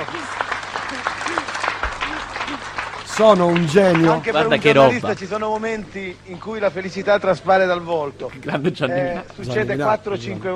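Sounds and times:
studio audience clapping: 0.0s - 5.7s
laughter: 3.2s - 5.2s, 8.2s - 10.5s
speech: 3.2s - 10.5s.

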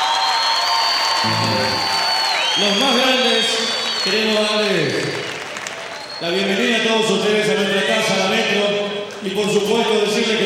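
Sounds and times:
audience applause: 0.0s - 6.2s
speech: 2.6s - 5.2s, 6.2s - 10.4s.

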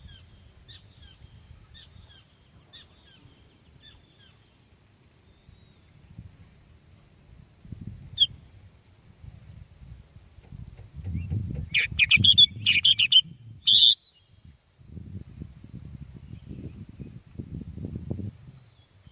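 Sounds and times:
sooty-headed bulbul bubbling phrases: 11.6s - 14.2s.

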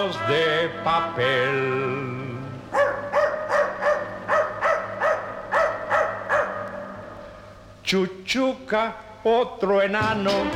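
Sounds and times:
speech: 0.0s - 2.9s, 7.9s - 10.5s
low constant hum: 0.0s - 10.5s
dog barking: 2.7s - 7.0s.

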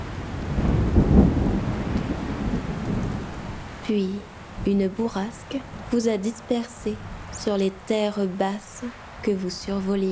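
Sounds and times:
rumbling thunder in a storm: 0.0s - 4.8s
speech: 3.9s - 10.0s.

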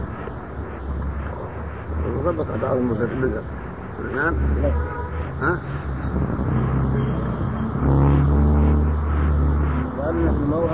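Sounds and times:
speech: 2.2s - 6.5s, 10.1s - 10.7s
car driving past: 4.3s - 10.7s.

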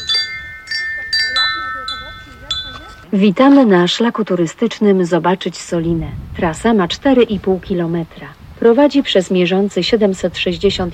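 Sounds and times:
small electronic bell chime of audio guide device: 0.0s - 3.0s
faint murmuring: 0.0s - 3.2s
speech: 3.1s - 10.9s.

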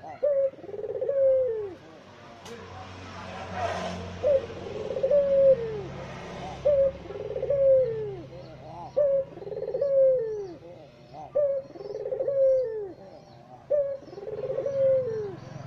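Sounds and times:
white Barbary dove cooing: 0.0s - 2.0s, 4.1s - 15.6s.

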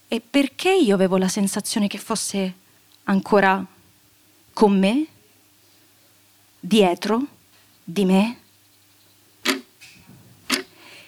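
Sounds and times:
speech: 0.1s - 3.8s, 4.6s - 5.2s, 6.6s - 8.4s
clock ticking: 9.4s - 9.7s.

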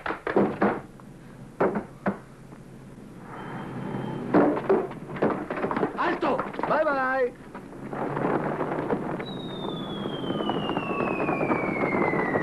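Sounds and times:
heavy thuds and cracking impacts: 0.2s - 0.9s, 1.6s - 2.3s, 4.3s - 12.4s
door being broken down in an action film: 0.3s - 0.8s, 1.6s - 2.2s, 4.3s - 9.5s
bangs and knocks: 0.3s - 0.9s, 1.6s - 2.3s, 4.3s - 12.4s.

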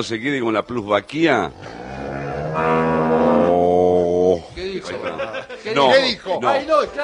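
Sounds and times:
speech: 0.0s - 1.8s, 2.6s - 3.2s, 4.4s - 7.0s
dairy cow mooing on a dairy farm: 1.5s - 4.4s
people talking and chuckling: 4.4s - 7.0s.

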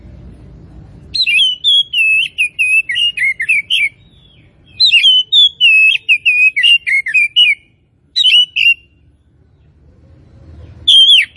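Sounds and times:
Oriental magpie-robin singing: 1.0s - 9.8s, 10.4s - 11.3s.

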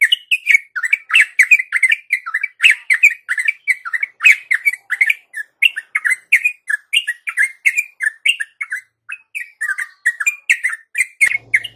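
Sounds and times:
yellow-vented bulbul chattering warbled song: 0.0s - 11.7s.

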